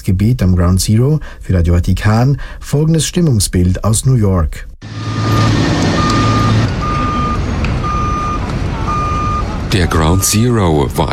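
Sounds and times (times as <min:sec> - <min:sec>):
speech: 0:00.1 - 0:05.0, 0:09.7 - 0:11.1
truck reversing alarm beeping on a construction site: 0:04.8 - 0:10.6
general construction site noise: 0:04.8 - 0:11.1
loud rumbling diesel engine: 0:04.8 - 0:11.1.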